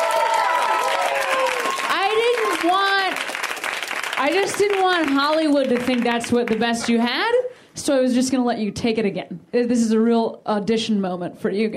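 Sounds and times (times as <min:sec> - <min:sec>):
whoops and cheers: 0:00.0 - 0:03.2
audience applause: 0:00.0 - 0:06.9
speech: 0:04.2 - 0:11.7.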